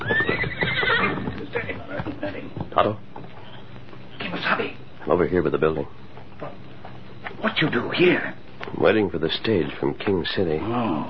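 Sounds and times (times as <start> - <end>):
paint horse Scout whinnying: 0.0 - 2.0
hoofbeats of Tonto's paint horse Scout: 0.0 - 9.1
speech: 2.8 - 3.1, 4.6 - 6.6, 7.4 - 11.0.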